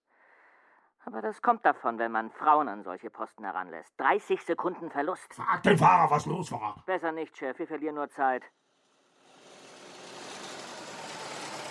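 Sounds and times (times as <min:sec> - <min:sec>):
speech: 0:01.1 - 0:08.6
car engine idling as car arrives: 0:09.2 - 0:11.6.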